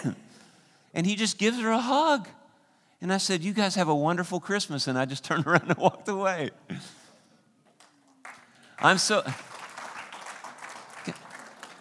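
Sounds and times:
speech: 0.0 - 0.2, 0.9 - 2.4, 3.0 - 7.0, 8.8 - 9.5
audience applause: 7.8 - 11.7.

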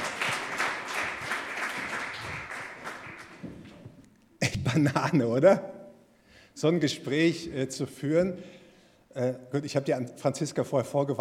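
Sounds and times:
applause: 0.0 - 3.9
speech: 4.7 - 5.8, 6.6 - 8.6, 9.2 - 11.2.

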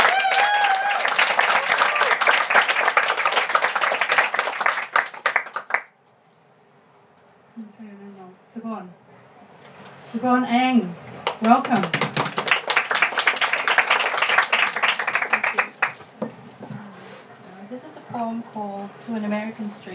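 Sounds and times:
round of applause: 0.0 - 5.9, 11.2 - 16.0
speech: 10.2 - 12.0, 18.3 - 19.9.

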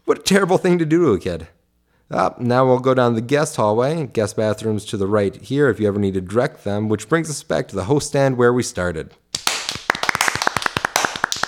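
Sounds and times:
speech: 0.1 - 9.2
one hand clapping against a thigh: 9.4 - 11.4.

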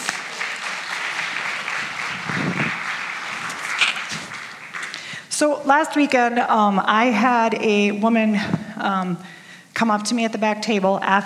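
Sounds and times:
audience applause: 0.0 - 5.2
speech: 5.4 - 11.2.

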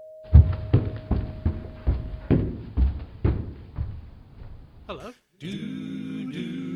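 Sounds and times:
knocking on a door: 0.3 - 4.5
speech: 4.9 - 6.6.

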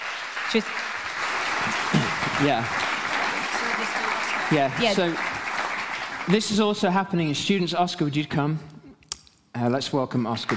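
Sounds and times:
audience applause at a gathering: 0.0 - 7.1, 10.3 - 10.5
speech: 0.5 - 1.0, 2.4 - 2.8, 4.5 - 5.3, 6.3 - 8.7, 9.6 - 10.5.

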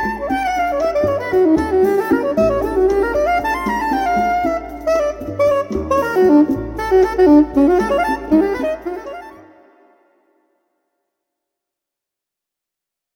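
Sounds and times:
soprano saxophone: 0.0 - 10.4.

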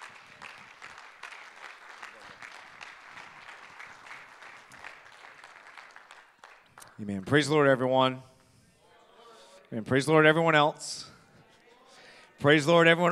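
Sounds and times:
church congregation applauding: 0.0 - 7.7
speech: 7.0 - 8.3, 9.8 - 11.1, 12.4 - 13.1.

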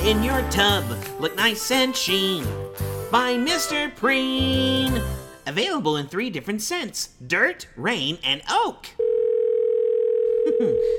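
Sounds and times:
speech: 0.0 - 9.1, 10.6 - 10.9
telephone tone of incoming call: 9.0 - 10.9.

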